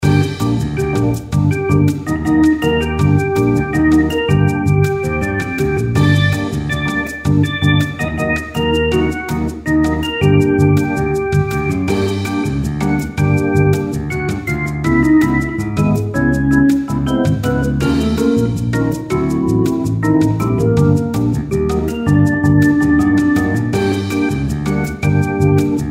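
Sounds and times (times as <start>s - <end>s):
elevator music: 0.0s - 25.8s.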